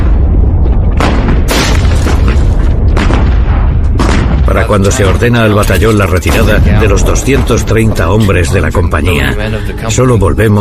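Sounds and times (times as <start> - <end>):
field artillery firing: 0.0 - 8.2
speech: 4.7 - 10.5.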